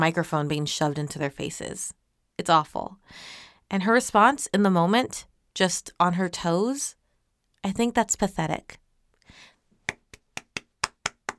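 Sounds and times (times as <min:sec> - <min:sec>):
speech: 0:00.0 - 0:07.0, 0:07.6 - 0:08.8
round of applause: 0:09.9 - 0:11.3.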